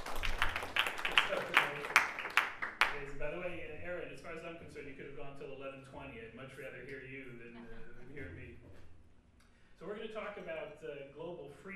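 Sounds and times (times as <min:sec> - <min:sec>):
audience clapping after a lecture: 0:00.0 - 0:03.1
speech: 0:05.7 - 0:08.6, 0:09.8 - 0:11.7.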